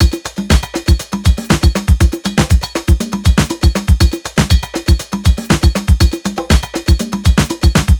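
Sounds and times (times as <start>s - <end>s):
hard busy Nu Jazz House beats at 120 BPM: 0.0s - 7.9s.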